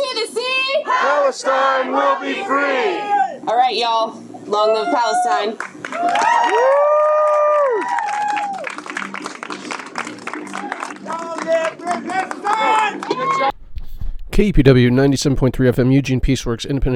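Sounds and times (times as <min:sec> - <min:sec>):
protest crowd cheering: 0:00.9 - 0:03.4, 0:04.5 - 0:13.6
speech: 0:01.0 - 0:07.0, 0:14.4 - 0:16.9.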